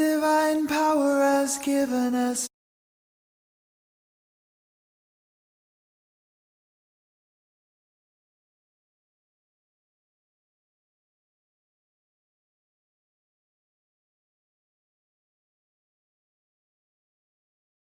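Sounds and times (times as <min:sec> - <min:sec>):
gospel song: 0:00.0 - 0:02.5.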